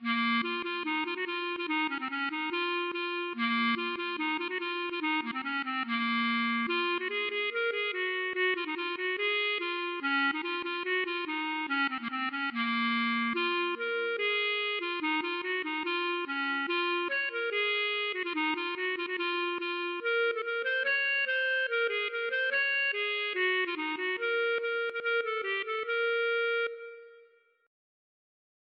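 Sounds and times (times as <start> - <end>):
klezmer music: 0.0 - 27.4.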